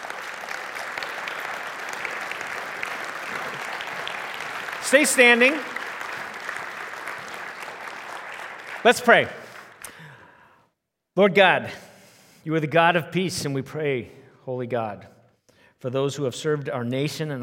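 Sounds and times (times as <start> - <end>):
audience applause: 0.0 - 10.2
speech: 4.9 - 5.7, 8.8 - 9.4, 11.2 - 15.2, 15.8 - 17.4.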